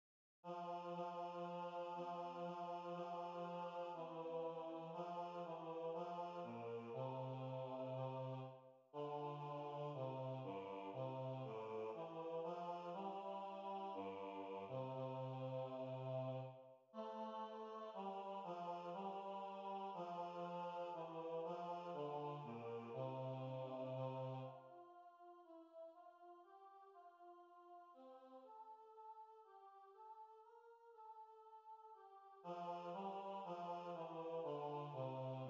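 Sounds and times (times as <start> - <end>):
bass part of a Christmas carol: 0.7 - 24.5, 32.5 - 35.4.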